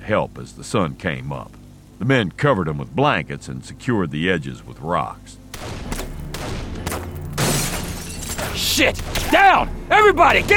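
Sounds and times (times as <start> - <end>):
speech: 0.1 - 5.8, 8.8 - 10.5
sniper rounds striking a house and outbuildings: 5.5 - 9.6.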